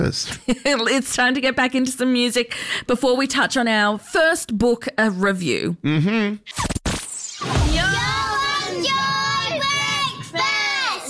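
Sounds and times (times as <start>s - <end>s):
speech: 0.0s - 6.7s
children shouting a recorded radio sting: 7.6s - 11.0s.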